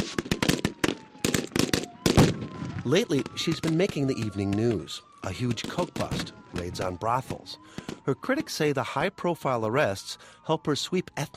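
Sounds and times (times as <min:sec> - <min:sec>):
gunshots during a mock terrorist kidnapping exercise at an outdoor reviewing stand: 0:00.0 - 0:04.6, 0:05.5 - 0:08.1
speech: 0:02.8 - 0:11.3.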